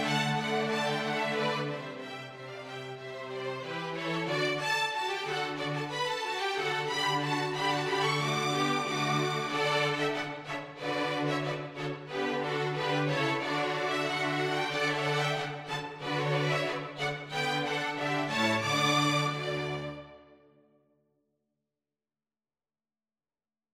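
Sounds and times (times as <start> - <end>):
string quartet playing a jig: 0.0 - 20.2.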